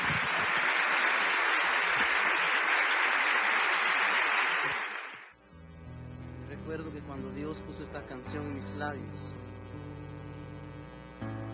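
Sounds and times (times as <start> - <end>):
audience applause: 0.0 - 5.4
speech: 7.5 - 9.4.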